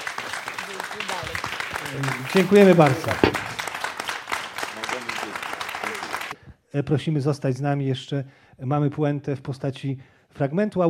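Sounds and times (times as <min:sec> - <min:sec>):
applause: 0:00.0 - 0:06.4
speech: 0:01.9 - 0:03.4, 0:06.8 - 0:10.8.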